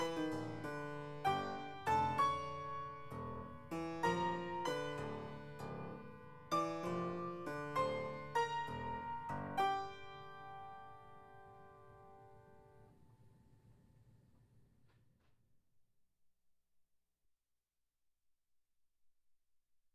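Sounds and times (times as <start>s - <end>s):
player piano: 0.0s - 12.9s.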